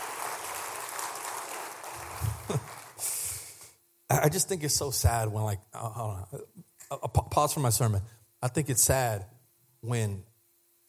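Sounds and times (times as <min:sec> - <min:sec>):
weak audience clapping: 0:00.0 - 0:03.2
speech: 0:02.5 - 0:03.1, 0:04.2 - 0:10.3.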